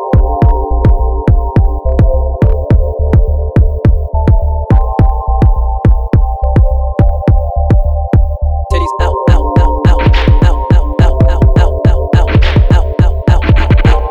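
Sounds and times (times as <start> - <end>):
rain breakbeat: 0.2 - 14.0.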